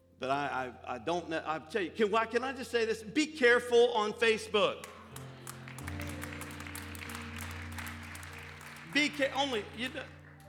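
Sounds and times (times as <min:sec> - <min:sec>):
speech: 0:00.2 - 0:05.0, 0:09.0 - 0:10.2
scattered audience clapping: 0:04.8 - 0:10.4.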